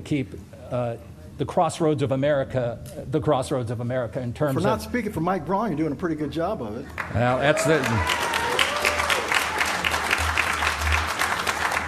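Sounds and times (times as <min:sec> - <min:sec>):
speech: 0:00.0 - 0:08.3
audience applause: 0:07.0 - 0:11.8.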